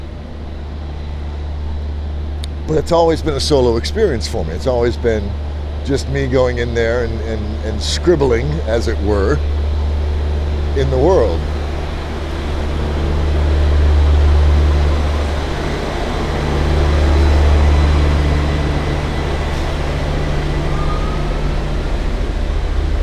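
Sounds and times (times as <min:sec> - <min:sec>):
massive semi-trucks moving around the city: 0:00.0 - 0:23.0
speech: 0:02.7 - 0:09.6, 0:10.8 - 0:11.5.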